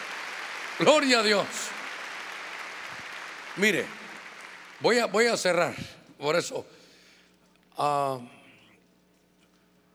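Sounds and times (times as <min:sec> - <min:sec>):
audience clapping: 0:00.0 - 0:05.6
speech: 0:00.8 - 0:01.8, 0:03.6 - 0:04.0, 0:04.8 - 0:06.8, 0:07.8 - 0:08.4.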